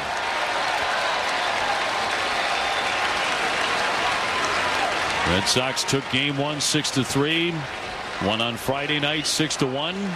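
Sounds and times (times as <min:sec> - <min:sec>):
baseball stadium crowd cheering: 0:00.0 - 0:10.1
speech: 0:05.3 - 0:10.1.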